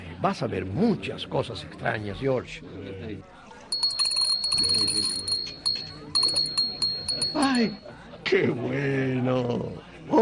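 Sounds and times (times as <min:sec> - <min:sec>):
speech: 0:00.2 - 0:03.4, 0:04.6 - 0:05.3, 0:07.3 - 0:10.2
small bell tinkling: 0:03.7 - 0:07.9.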